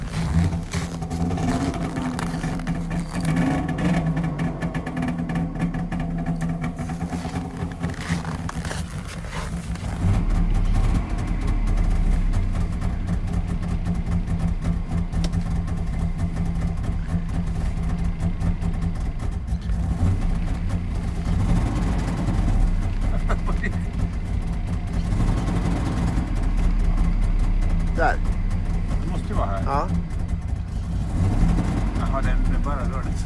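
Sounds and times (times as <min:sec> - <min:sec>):
car engine idling and revving: 0:00.0 - 0:33.2.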